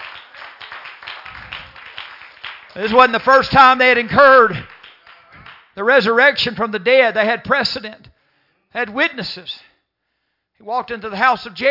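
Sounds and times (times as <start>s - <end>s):
church congregation clapping hands: 0.0s - 6.5s
speech: 2.8s - 4.7s, 5.8s - 8.1s, 8.7s - 9.7s, 10.6s - 11.6s.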